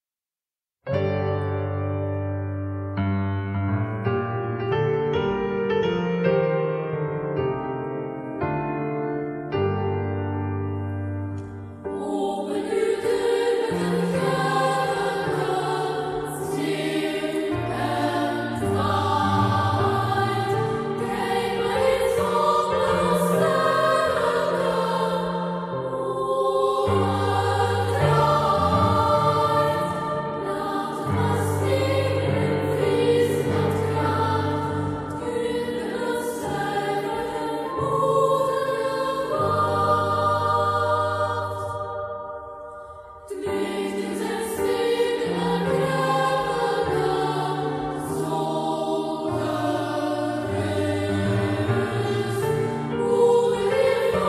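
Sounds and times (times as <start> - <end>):
piano: 0.8 - 54.2
children's choir singing: 11.5 - 54.2.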